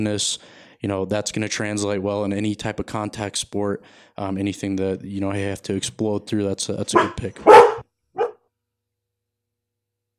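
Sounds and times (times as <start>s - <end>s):
speech: 0.0s - 7.8s
dog barking: 6.9s - 8.4s.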